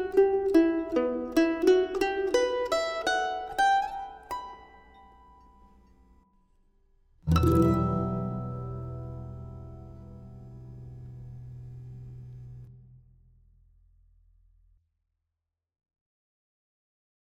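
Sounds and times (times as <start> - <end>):
mandolin playing a carol: 0.0 - 6.1, 7.3 - 12.7.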